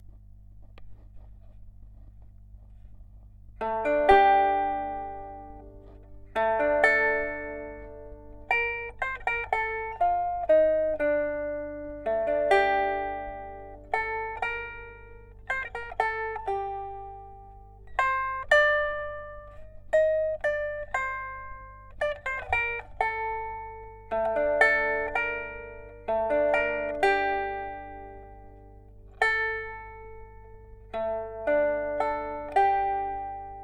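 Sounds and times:
lute guitar sample: 3.5s - 33.6s.

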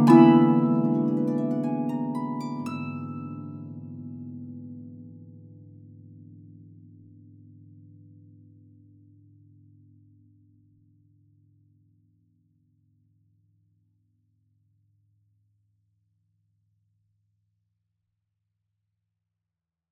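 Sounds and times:
harp duo playing an etude in Lydian b7: 0.0s - 4.2s.

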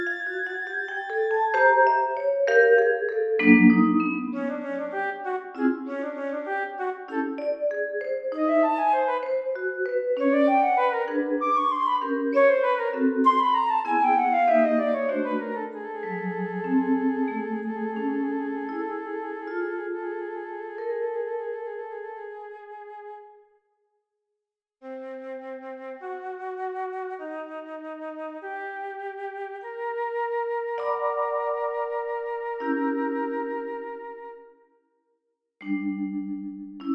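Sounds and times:
flute etude: 0.0s - 2.3s, 3.4s - 23.6s, 24.8s - 34.7s
vibraphone: 0.0s - 5.0s, 7.2s - 21.1s, 30.8s - 33.8s, 35.6s - 36.9s.

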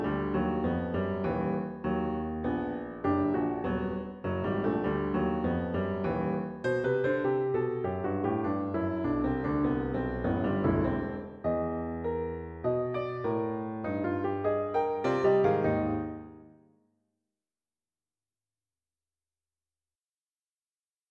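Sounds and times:
piano pieces: 0.0s - 16.7s.

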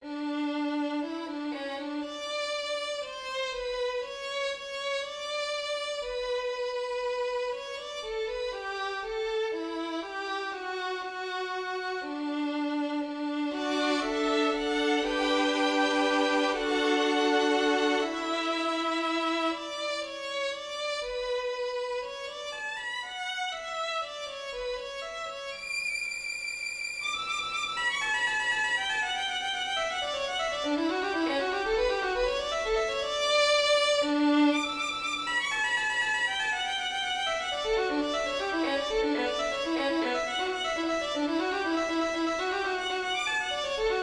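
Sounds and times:
violin sonata: 0.0s - 44.0s.

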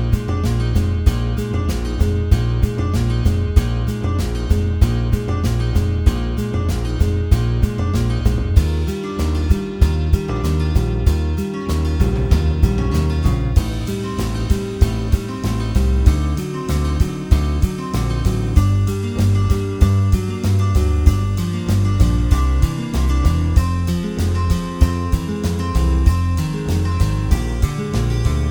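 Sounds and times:
bass: 0.0s - 28.4s
drums: 0.0s - 28.4s
guitar: 0.0s - 28.4s.

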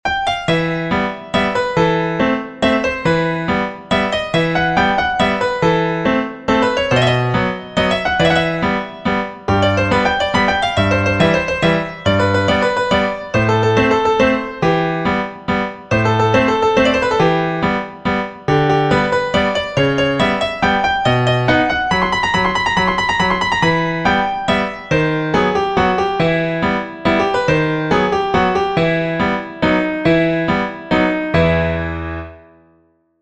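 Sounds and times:
waltz music: 0.2s - 32.5s.

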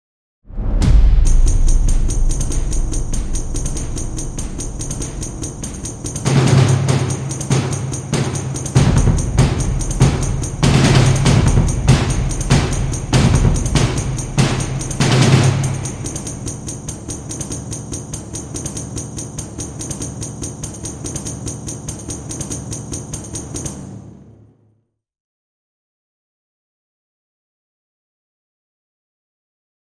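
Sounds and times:
cinematic drums: 0.5s - 23.9s.

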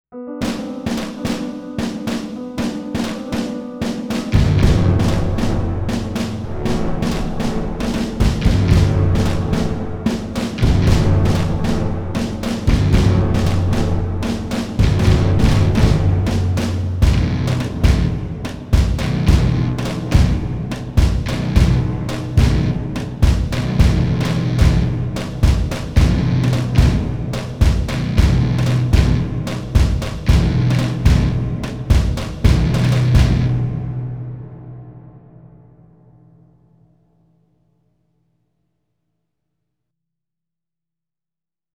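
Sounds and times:
combat theme music: 0.4s - 35.9s.

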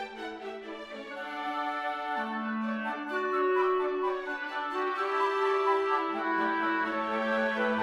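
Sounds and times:
clarinet concerto in D major: 0.2s - 7.8s.

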